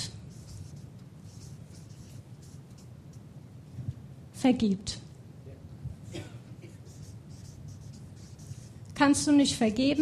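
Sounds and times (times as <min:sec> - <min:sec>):
pen scratching out short strokes in handwriting: 0:00.3 - 0:02.9, 0:06.8 - 0:08.8
speech: 0:04.4 - 0:05.0, 0:09.0 - 0:09.9.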